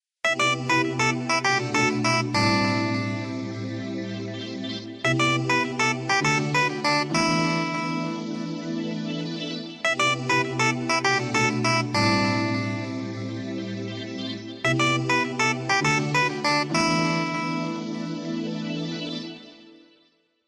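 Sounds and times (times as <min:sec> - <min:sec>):
ringtone melody: 0:00.3 - 0:19.7.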